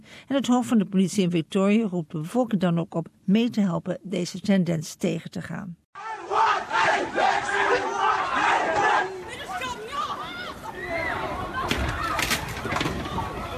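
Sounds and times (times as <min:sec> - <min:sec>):
speech: 0:00.2 - 0:06.1
violent crowd disturbance shouting and yelling at the Moomba festival in Victoria: 0:06.0 - 0:13.5.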